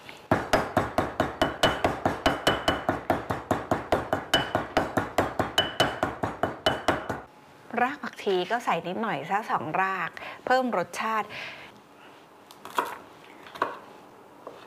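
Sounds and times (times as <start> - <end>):
pestle pounding shrimp paste chili dip in mortar: 0.3 - 7.3
speech: 7.8 - 11.6.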